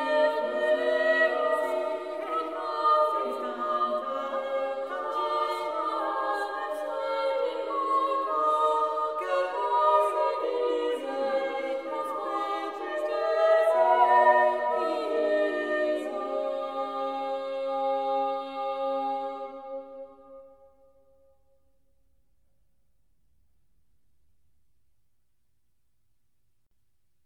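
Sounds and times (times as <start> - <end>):
choir singing a motet: 0.0 - 20.5.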